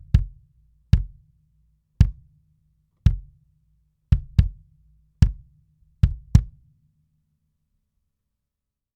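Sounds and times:
compressed kick drum: 0:00.0 - 0:01.4, 0:02.0 - 0:02.4, 0:03.0 - 0:03.5, 0:04.1 - 0:06.7.

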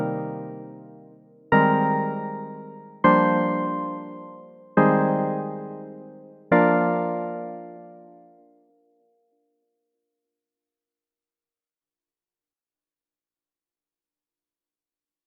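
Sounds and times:
mellow house piano: 0:00.0 - 0:01.0, 0:01.6 - 0:08.2.

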